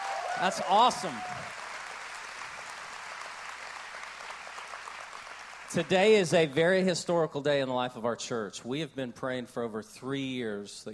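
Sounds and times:
crowd applause: 0:00.0 - 0:06.6
speech: 0:00.4 - 0:01.4, 0:05.7 - 0:10.9.

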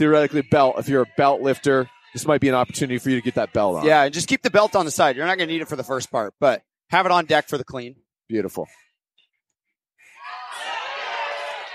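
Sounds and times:
speech: 0:00.0 - 0:08.8
crowd cheering and clapping: 0:10.2 - 0:11.7.

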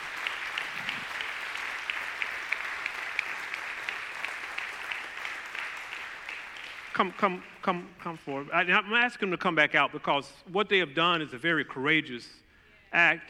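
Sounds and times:
crowd applauding: 0:00.0 - 0:07.8
speech: 0:07.0 - 0:13.2.

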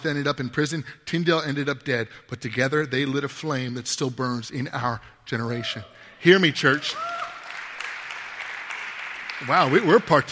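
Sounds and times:
speech: 0:00.0 - 0:07.3, 0:09.4 - 0:10.3
audience clapping: 0:06.6 - 0:10.3.

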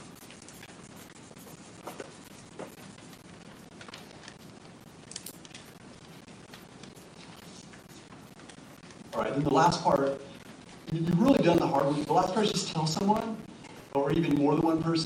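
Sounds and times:
pen scratching on paper: 0:00.0 - 0:10.1
speech: 0:09.2 - 0:10.2, 0:10.9 - 0:13.3, 0:14.1 - 0:15.0.

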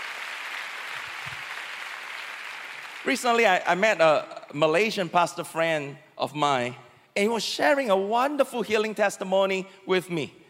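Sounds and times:
audience clapping: 0:00.0 - 0:03.8
speech: 0:03.0 - 0:10.4.

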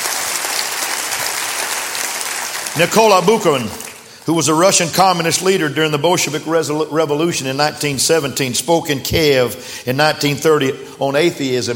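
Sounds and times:
audience clapping hands: 0:00.0 - 0:04.5
speech: 0:02.8 - 0:11.7.

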